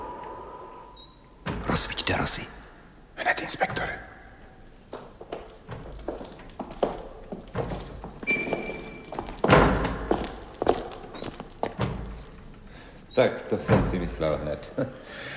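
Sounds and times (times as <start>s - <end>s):
speech: 1.8s - 2.6s, 3.2s - 4.2s, 13.2s - 15.3s
faint high door creaks: 3.6s - 14.8s
door banging open and shut in wind: 5.6s - 10.6s, 13.6s - 14.5s.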